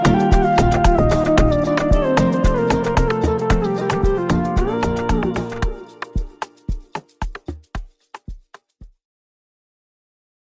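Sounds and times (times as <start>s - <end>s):
Christmas amapiano song: 0.0s - 7.7s.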